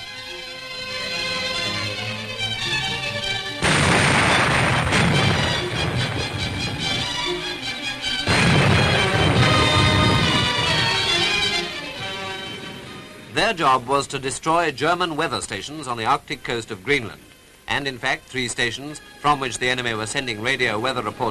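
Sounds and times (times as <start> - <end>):
orchestral music: 0.0 - 17.1, 17.7 - 21.2
depth charge explosions blasting a US Coast Guard ship out of Arctic ice: 3.6 - 7.5, 8.3 - 11.6
speech: 13.5 - 21.2.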